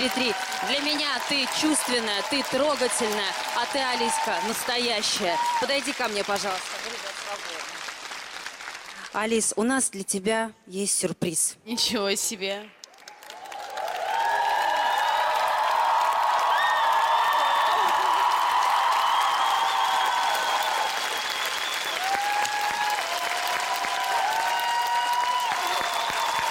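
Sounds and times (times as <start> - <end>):
faint cheers: 0.0 - 6.0, 13.0 - 26.4
speech: 0.0 - 7.7, 9.2 - 12.8
audience applause: 0.0 - 9.2, 12.8 - 26.4.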